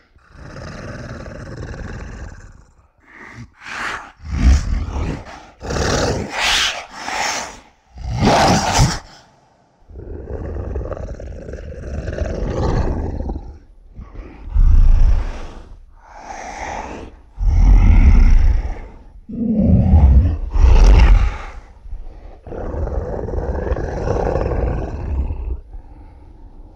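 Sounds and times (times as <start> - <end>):
monster breathing: 0.0 - 26.7.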